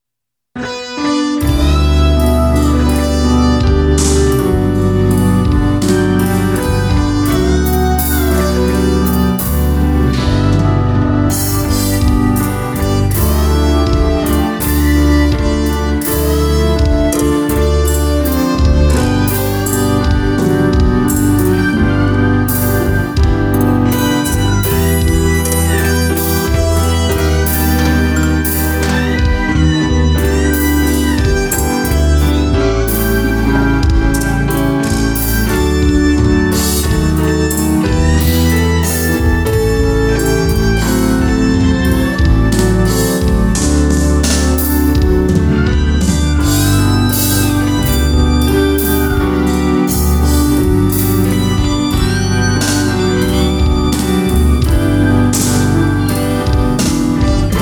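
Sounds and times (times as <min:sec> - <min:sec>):
instrumental music: 0:00.6 - 0:57.6.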